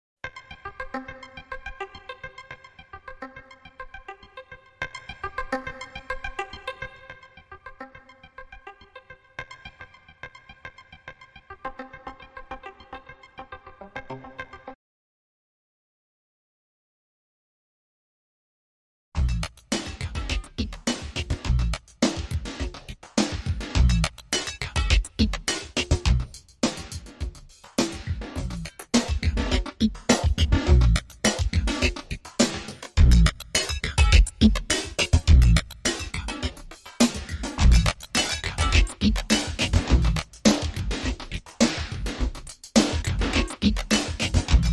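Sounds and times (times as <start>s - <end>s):
rhythm: 19.2s - 44.7s.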